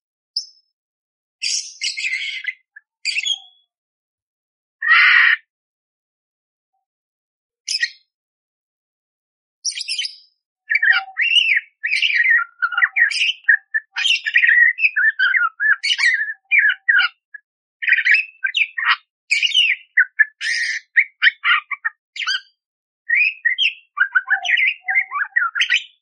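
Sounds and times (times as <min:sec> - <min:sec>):
budgerigar warbling song: 0:01.4 - 0:03.6, 0:09.7 - 0:25.9.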